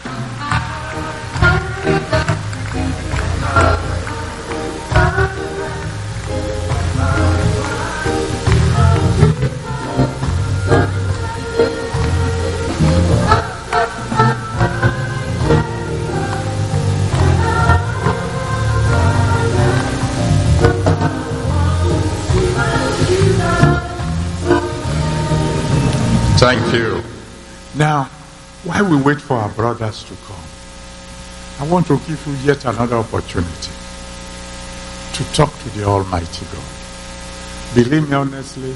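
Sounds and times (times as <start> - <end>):
audience clapping along: 0.4 - 10.4, 12.0 - 14.4
music with a heavy bass line and sustained melodic tones: 0.6 - 27.6
speech: 29.0 - 30.6, 31.6 - 33.8, 35.2 - 36.8, 37.8 - 38.7.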